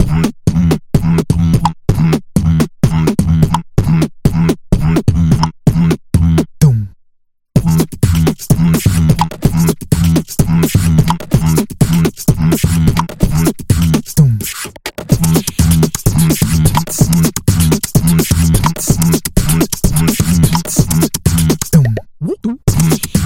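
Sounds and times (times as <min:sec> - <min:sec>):
beatbox: 0:00.0 - 0:07.0, 0:07.6 - 0:23.2.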